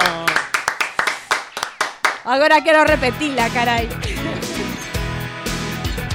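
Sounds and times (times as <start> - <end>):
audience clapping: 0.0 - 2.4
speech: 2.3 - 4.4
laughter: 3.4 - 6.0.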